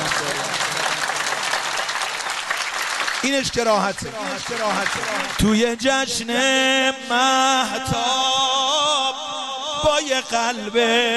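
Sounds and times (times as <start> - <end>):
audience clapping along at a celebration: 0.0 - 6.1
speech: 3.2 - 8.9, 9.8 - 11.1.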